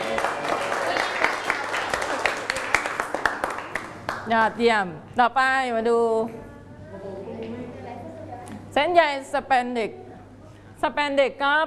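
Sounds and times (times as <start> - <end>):
classmates clapping: 0.0 - 4.3
speech: 4.3 - 6.5, 8.8 - 10.0, 10.8 - 11.6.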